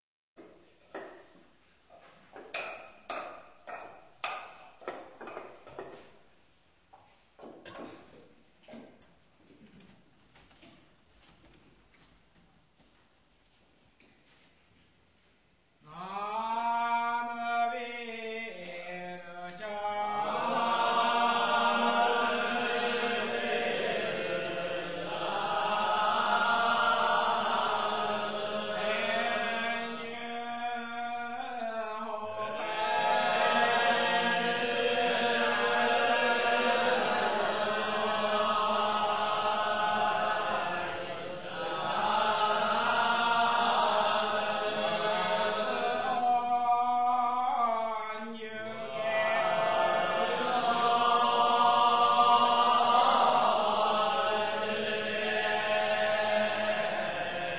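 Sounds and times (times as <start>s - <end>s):
Japanese shomyo chant harmony: 15.8s - 57.5s.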